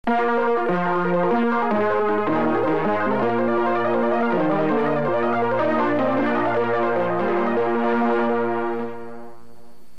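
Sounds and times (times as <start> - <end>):
logo fanfare: 0.1 - 9.5.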